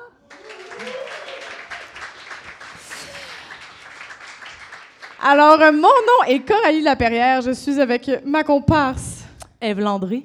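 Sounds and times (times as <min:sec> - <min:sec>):
applause: 0:00.0 - 0:06.1
speech: 0:05.2 - 0:10.2.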